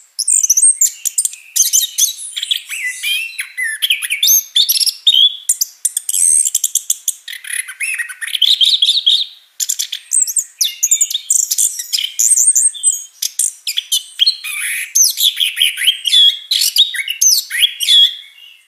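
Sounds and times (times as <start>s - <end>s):
white-eye bird singing with full varied song: 0.0s - 18.6s.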